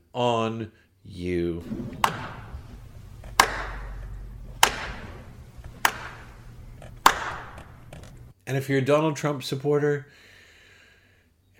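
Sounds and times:
speech: 0.2 - 2.3, 8.5 - 10.3
faint low hum: 1.6 - 8.3
slow hand claps: 1.8 - 8.3.

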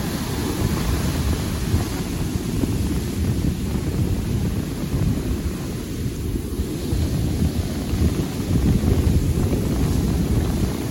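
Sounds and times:
surf rumbling on a Florida beach: 0.0 - 10.9
wind buffeting the microphone on a Florida beach: 0.0 - 10.9.

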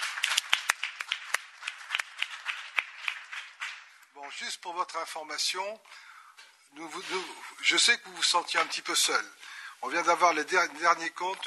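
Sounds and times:
audience applauding: 0.0 - 4.0
speech: 4.2 - 6.1, 6.7 - 11.4.

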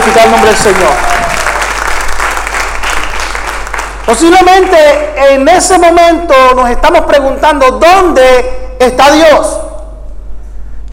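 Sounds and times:
audience applause: 0.0 - 4.1
speech: 0.1 - 1.2, 4.1 - 9.6.

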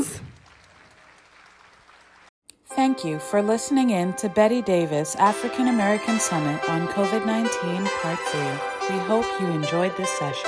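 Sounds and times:
audience applause: 0.0 - 2.3
speech: 2.8 - 10.4.

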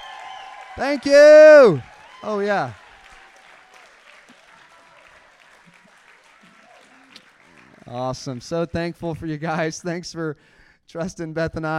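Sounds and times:
audience applause: 0.0 - 8.4
speech: 0.8 - 2.8, 7.9 - 11.7.

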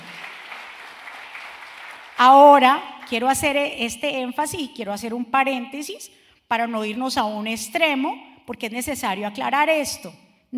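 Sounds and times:
audience applause: 0.0 - 2.2
speech: 2.2 - 10.5.

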